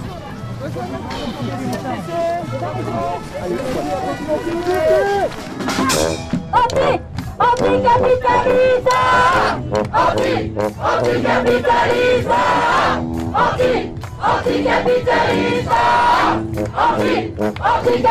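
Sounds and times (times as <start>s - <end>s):
large protest crowd shouting amid tear gas: 0.3s - 18.1s.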